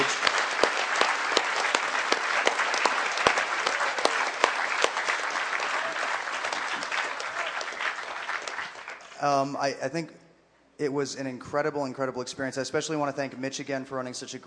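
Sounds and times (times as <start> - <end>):
audience applause: 0.0 - 9.4
speech: 9.2 - 10.2, 10.8 - 14.4.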